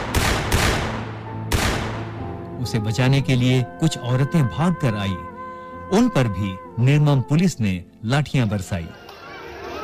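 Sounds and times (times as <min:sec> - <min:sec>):
soldiers shooting gunshot bursts: 0:00.0 - 0:02.2
speech: 0:02.6 - 0:05.3, 0:05.9 - 0:09.0.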